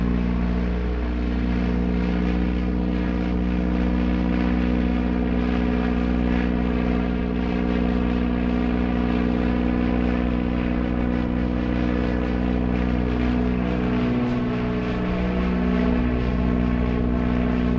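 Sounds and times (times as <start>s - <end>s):
propeller plane engine high and steady: 0.0s - 17.7s.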